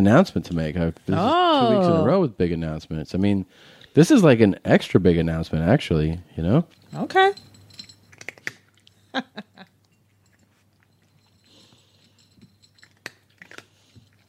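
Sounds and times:
speech: 0.0s - 7.5s, 9.2s - 9.5s
cat crunching dry kibble from a bowl: 8.0s - 9.0s, 12.6s - 14.2s.

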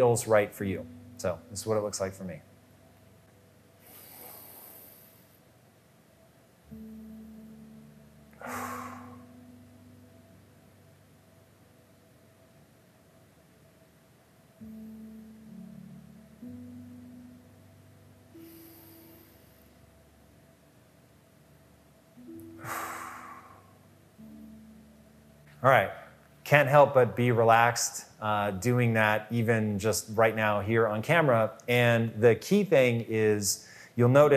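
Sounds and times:
speech: 0.0s - 2.5s, 25.6s - 25.8s, 26.5s - 34.3s
quiet low hum: 0.0s - 33.4s
slow breathing in through the nose and out through the mouth: 3.8s - 5.5s, 8.3s - 9.6s, 18.3s - 19.9s, 22.4s - 23.8s, 33.6s - 34.0s.

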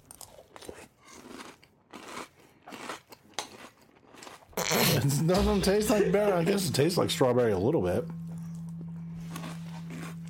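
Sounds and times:
crunching Franken Berry cereal during a taste test: 0.0s - 4.6s, 9.2s - 10.2s
speech: 4.7s - 8.2s.

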